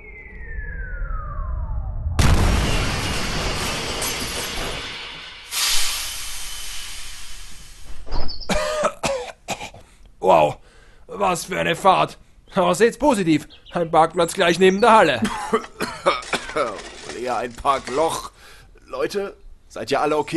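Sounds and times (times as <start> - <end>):
bus crash-landing impact: 0.4 - 7.6
speech: 10.3 - 10.6, 11.2 - 18.3, 18.9 - 20.3.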